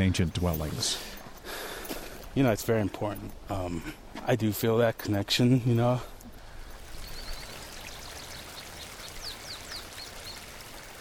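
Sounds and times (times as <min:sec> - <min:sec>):
speech: 0:00.0 - 0:01.2, 0:02.4 - 0:06.1
flowing creek water: 0:06.2 - 0:10.9.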